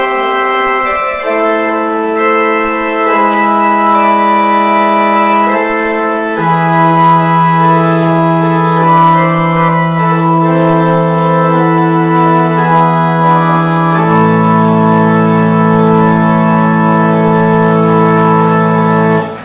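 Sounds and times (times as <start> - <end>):
organ exit music: 0.0 - 19.4.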